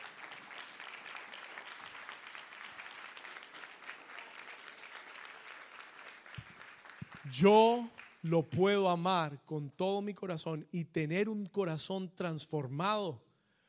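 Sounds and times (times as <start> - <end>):
audience applause: 0.0 - 8.3
speech: 7.3 - 13.2.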